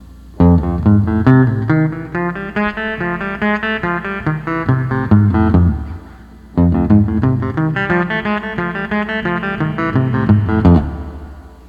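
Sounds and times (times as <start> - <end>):
12-string lap guitar playing: 0.4 - 11.6.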